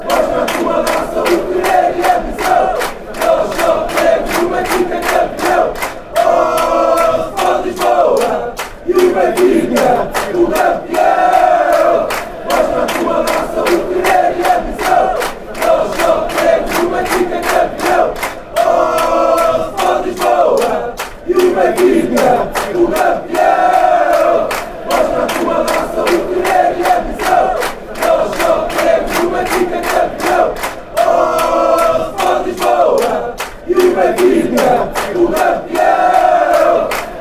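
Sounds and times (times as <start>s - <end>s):
football chants: 0.0s - 37.1s.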